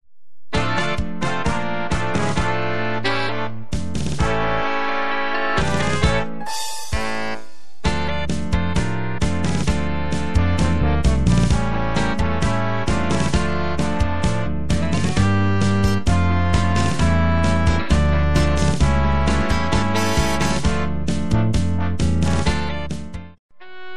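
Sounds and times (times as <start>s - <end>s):
tango music: 0.6s - 23.0s.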